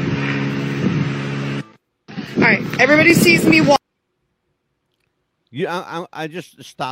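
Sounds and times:
airplane engine in cell phone video: 0:00.0 - 0:03.7
speech: 0:02.5 - 0:03.8, 0:05.5 - 0:06.8.

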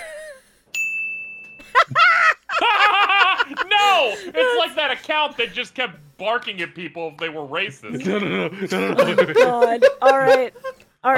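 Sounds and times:
high-pitched ding sound effect: 0:00.7 - 0:01.7
laughter: 0:01.6 - 0:05.6, 0:07.9 - 0:10.9
speech: 0:05.1 - 0:11.1.

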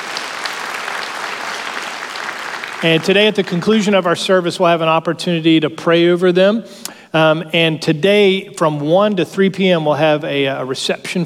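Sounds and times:
congregation applauding at a church service: 0:00.0 - 0:04.1
speech: 0:02.8 - 0:11.2.

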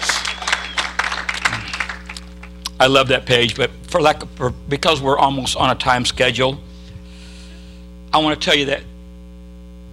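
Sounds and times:
audience clapping: 0:00.0 - 0:02.8
speech: 0:02.8 - 0:06.7, 0:08.1 - 0:08.9.

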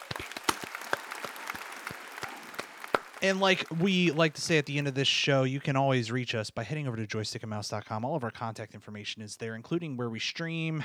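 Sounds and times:
crowd clapping: 0:00.0 - 0:05.2
speech: 0:03.2 - 0:10.8.

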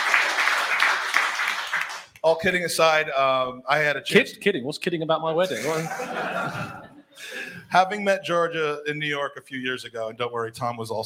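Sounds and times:
audience applause: 0:00.0 - 0:02.2
speech: 0:02.2 - 0:11.0
laughter: 0:05.4 - 0:07.7.

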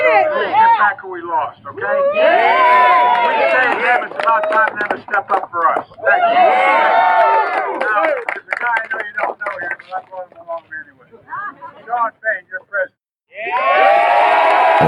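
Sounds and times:
speech: 0:00.8 - 0:09.0, 0:09.6 - 0:14.8
crowd of union workers cheering: 0:01.8 - 0:05.1, 0:06.0 - 0:08.6, 0:13.3 - 0:14.8.

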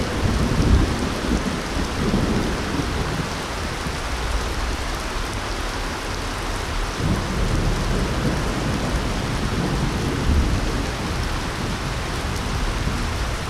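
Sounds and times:
deep rumble of rolling thunder: 0:00.0 - 0:04.0, 0:06.9 - 0:13.4
heavy rain at night: 0:00.0 - 0:13.4.

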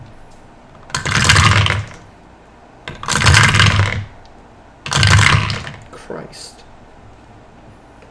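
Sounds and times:
many dice rolling on a table: 0:00.8 - 0:02.1, 0:02.9 - 0:04.2, 0:04.9 - 0:05.9
speech: 0:06.1 - 0:06.7.

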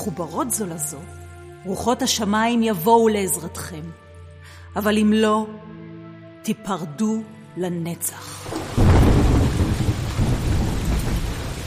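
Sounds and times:
speech: 0:00.0 - 0:05.8, 0:06.4 - 0:08.6
heavy pouring rain: 0:08.3 - 0:11.6
thunder rumbling: 0:08.5 - 0:11.6.

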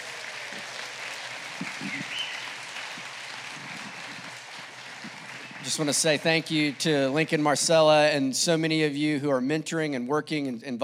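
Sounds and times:
audience applause: 0:00.0 - 0:08.1
speech: 0:05.7 - 0:10.8.

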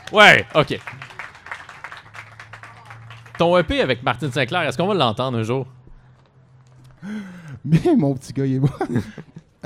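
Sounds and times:
audience applause: 0:00.0 - 0:04.0
speech: 0:00.1 - 0:01.0, 0:03.4 - 0:05.8, 0:07.0 - 0:09.6
laughter: 0:07.7 - 0:09.6.

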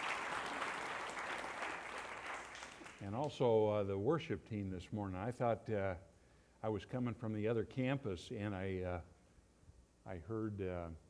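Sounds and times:
audience applause: 0:00.0 - 0:03.0
speech: 0:03.0 - 0:09.1, 0:10.1 - 0:11.0.

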